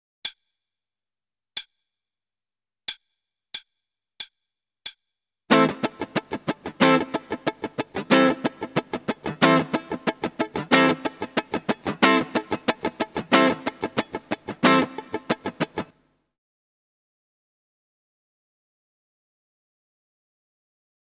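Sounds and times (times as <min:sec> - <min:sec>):
starter guitar rhythm: 0:05.5 - 0:16.0.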